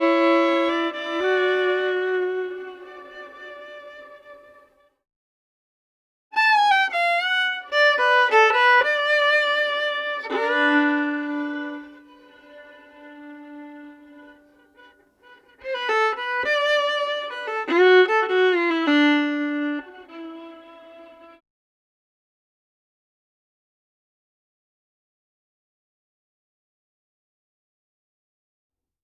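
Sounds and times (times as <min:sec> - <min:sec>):
fiddle: 0:00.0 - 0:04.9, 0:06.4 - 0:21.4.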